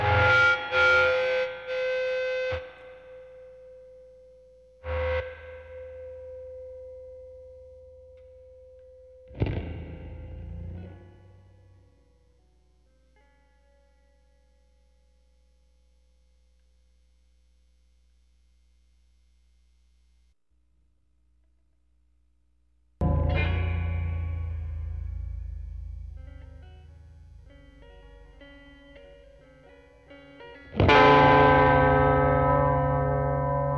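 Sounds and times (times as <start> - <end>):
electric guitar: 0.0 - 3.1, 4.8 - 7.5, 8.1 - 13.5, 23.0 - 33.7.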